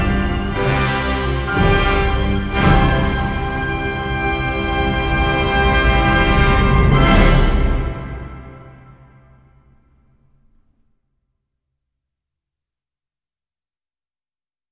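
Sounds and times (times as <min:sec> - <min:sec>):
epic theme music: 0:00.0 - 0:09.7.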